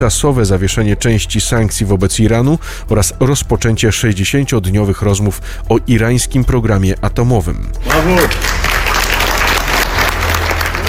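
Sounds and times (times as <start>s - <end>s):
speech: 0.0s - 9.0s
applause for Trump announcing a signed agreement: 7.8s - 10.8s.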